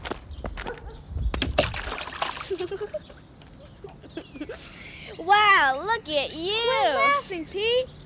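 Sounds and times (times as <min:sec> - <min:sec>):
kid splashing into a mud puddle: 0:01.4 - 0:02.8
water sloshing and trickling: 0:01.4 - 0:04.0
speech: 0:02.5 - 0:03.2, 0:05.2 - 0:08.0.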